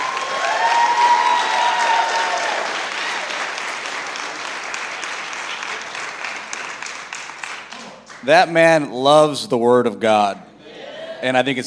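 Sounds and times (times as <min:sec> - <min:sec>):
audience applause: 0:00.0 - 0:08.3
speech: 0:08.2 - 0:10.5, 0:11.2 - 0:11.6.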